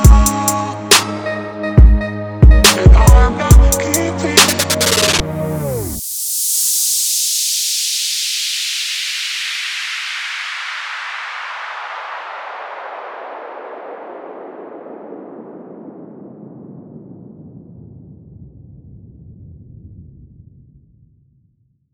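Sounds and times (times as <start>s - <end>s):
chillstep music: 0.0s - 7.1s.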